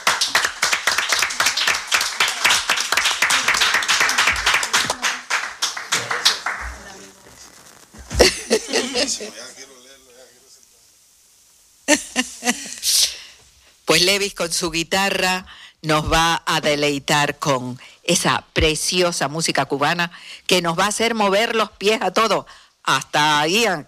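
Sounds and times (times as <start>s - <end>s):
audience applause: 0.0s - 9.3s
laughter: 8.1s - 9.7s, 11.9s - 12.8s
speech: 14.0s - 23.8s.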